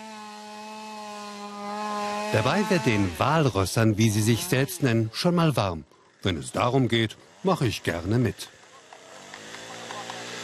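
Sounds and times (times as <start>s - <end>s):
chainsaw cutting through ice: 0.0s - 10.4s
speech: 2.3s - 8.6s.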